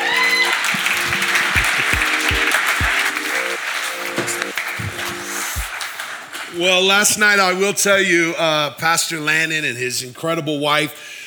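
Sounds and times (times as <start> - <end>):
audience applause: 0.0 - 7.4
speech: 6.6 - 11.1.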